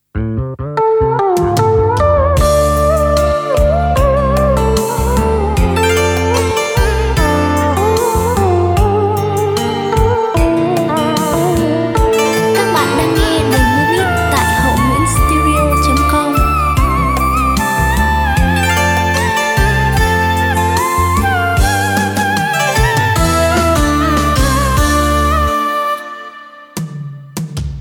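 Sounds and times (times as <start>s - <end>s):
music beat playback: 1.2s - 27.8s.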